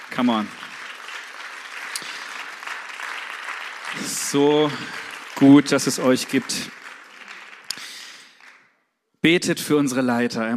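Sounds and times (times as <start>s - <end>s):
audience applause: 0.0s - 8.7s
speech: 0.2s - 0.6s, 4.3s - 6.8s, 9.2s - 10.5s.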